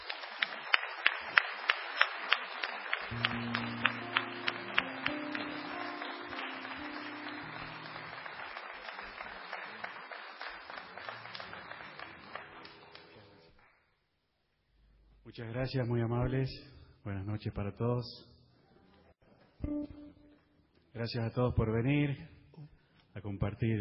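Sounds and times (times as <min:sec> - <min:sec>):
audience applause: 0:00.0 - 0:13.4
speech: 0:15.4 - 0:18.3, 0:21.0 - 0:22.4, 0:23.3 - 0:23.8.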